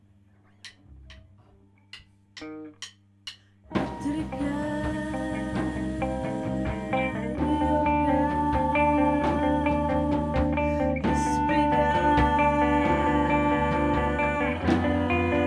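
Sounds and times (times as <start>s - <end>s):
guitar: 0.7s - 3.0s, 3.6s - 15.4s
person singing: 3.8s - 15.4s.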